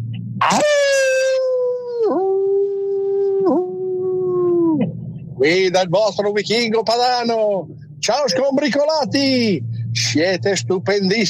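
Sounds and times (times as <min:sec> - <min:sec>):
human voice imitating a wolf-like howl: 0:00.4 - 0:04.8
speech: 0:05.4 - 0:11.2.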